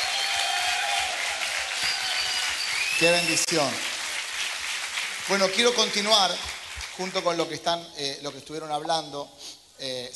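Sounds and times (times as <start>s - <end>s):
audience applause: 0.0s - 7.3s
speech: 3.0s - 3.9s, 5.3s - 10.1s.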